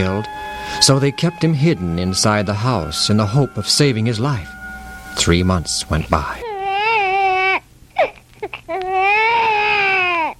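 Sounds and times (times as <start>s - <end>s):
speech: 0.0s - 4.6s, 5.2s - 6.5s
infant crying with gasping sobs: 6.4s - 10.3s.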